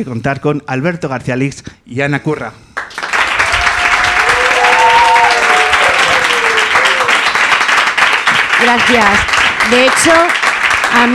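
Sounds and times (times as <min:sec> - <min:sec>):
speech: 0:00.0 - 0:02.7, 0:08.6 - 0:11.1
audience applause: 0:02.8 - 0:11.1.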